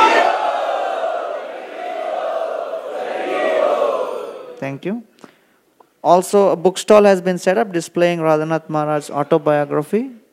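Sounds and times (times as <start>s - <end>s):
audience chanting in welcome at a gathering: 0.0s - 4.6s
speech: 4.8s - 5.2s, 6.0s - 10.2s.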